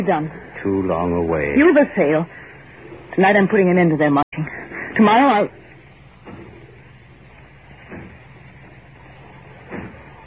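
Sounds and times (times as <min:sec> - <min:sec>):
speech: 0:00.0 - 0:02.4, 0:03.2 - 0:04.2, 0:05.0 - 0:05.6
banging as if breaking down a door: 0:07.8 - 0:08.3, 0:09.6 - 0:10.2.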